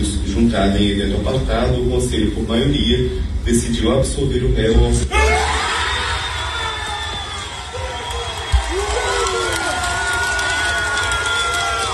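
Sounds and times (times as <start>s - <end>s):
speech: 0.4s - 5.6s
packed courtroom audience reacting to a jury acquittal: 5.1s - 11.9s.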